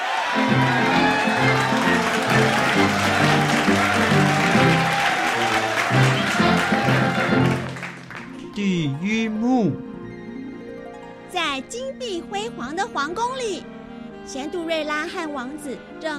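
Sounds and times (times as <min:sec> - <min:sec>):
classroom applause: 0:00.0 - 0:08.6
speech: 0:08.6 - 0:09.9, 0:11.6 - 0:13.7, 0:14.3 - 0:16.1.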